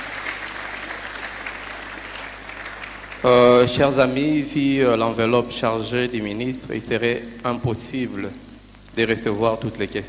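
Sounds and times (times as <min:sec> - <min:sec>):
audience applause for the minister: 0:00.0 - 0:03.8
speech: 0:03.2 - 0:08.4, 0:09.0 - 0:10.0.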